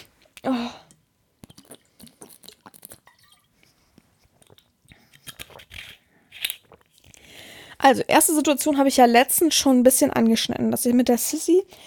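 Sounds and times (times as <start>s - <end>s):
person sipping a drink: 0.0s - 7.5s
wet mouth and swallowing noises: 1.4s - 5.7s
speech: 7.8s - 11.8s.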